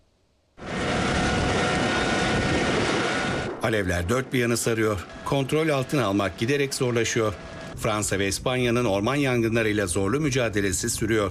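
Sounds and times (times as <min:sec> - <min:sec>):
firefighting aircraft engine roar: 0:00.6 - 0:11.2
speech: 0:03.6 - 0:11.2.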